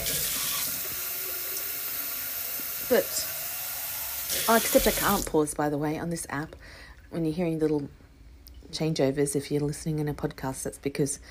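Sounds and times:
water running: 0.0s - 7.9s
speech: 2.9s - 3.3s, 4.3s - 8.0s, 8.7s - 11.2s.

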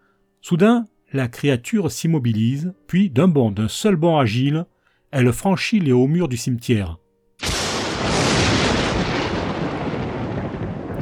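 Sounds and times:
speech: 0.5s - 7.5s
thunderclap: 7.4s - 11.0s.

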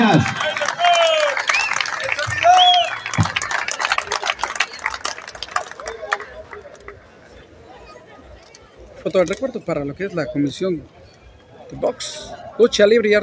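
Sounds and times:
audience applause: 0.0s - 7.0s
speech: 9.0s - 11.0s, 11.7s - 13.2s.

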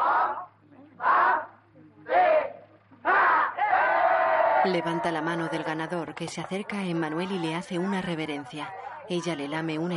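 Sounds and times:
crowd shouting and cheering at a boxing match in a 1974 drama film: 0.0s - 5.6s
speech: 4.6s - 9.9s.

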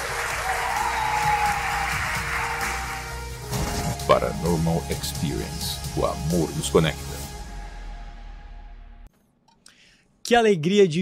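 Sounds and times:
audience applause: 0.0s - 3.4s
speech: 4.2s - 7.2s, 10.3s - 10.9s.

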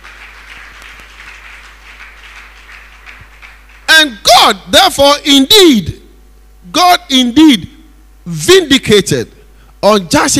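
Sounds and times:
church audience clapping hands: 0.0s - 3.9s
speech: 4.0s - 6.0s, 6.7s - 7.7s, 8.3s - 10.3s.

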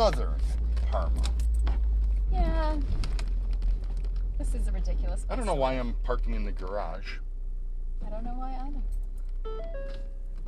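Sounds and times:
speech: 0.0s - 1.4s, 2.3s - 3.1s, 4.4s - 7.2s, 8.0s - 10.4s
steady low car engine rumble: 0.0s - 10.4s
car low fuel warning chime: 9.4s - 10.3s.

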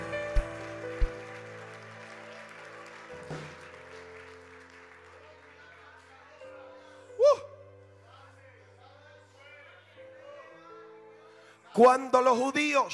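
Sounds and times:
audience applause: 0.0s - 6.4s
speech: 11.8s - 12.9s.

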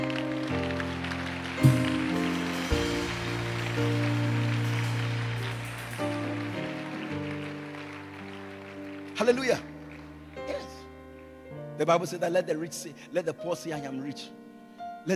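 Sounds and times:
audience clapping: 0.0s - 11.4s
sustained instrumental chords: 0.8s - 11.8s
speech: 9.2s - 9.7s, 11.8s - 14.4s.

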